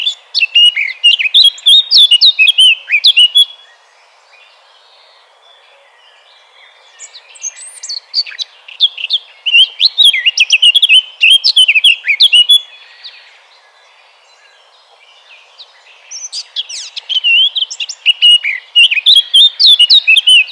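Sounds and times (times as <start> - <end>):
blackcap singing: 0.0 - 20.5.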